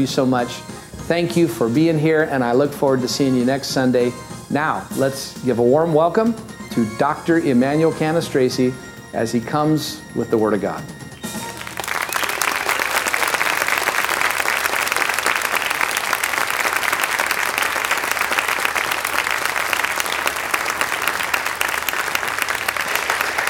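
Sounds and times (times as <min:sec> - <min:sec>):
speech: 0:00.0 - 0:11.0
audience applause: 0:11.2 - 0:23.4.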